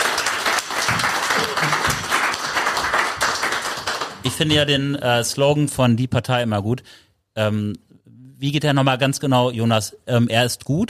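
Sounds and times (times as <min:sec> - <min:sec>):
audience applause: 0:00.0 - 0:04.3
speech: 0:04.3 - 0:10.8.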